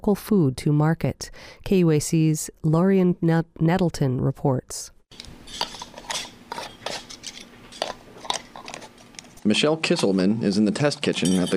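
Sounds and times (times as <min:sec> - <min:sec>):
speech: 0:00.0 - 0:05.7, 0:09.4 - 0:11.5
metal lids screwed onto glass jars of jalapeno jelly in a test kitchen: 0:05.2 - 0:09.3.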